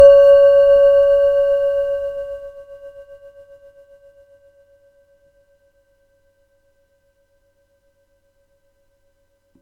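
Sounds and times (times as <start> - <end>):
planetary singing bowls tuned to om: 0.0 - 4.9.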